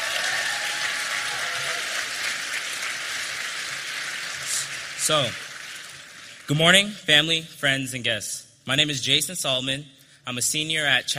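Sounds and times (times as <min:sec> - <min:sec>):
audience applause: 0:00.0 - 0:06.9
speech: 0:05.1 - 0:05.4, 0:06.5 - 0:11.1.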